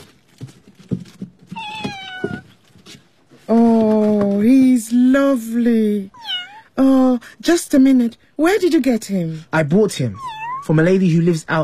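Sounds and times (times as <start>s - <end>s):
soft low bumps and rustling: 0.0s - 4.7s
kitten meowing: 1.6s - 2.5s, 6.1s - 6.8s, 10.1s - 10.8s
speech: 4.4s - 6.2s, 6.8s - 11.6s.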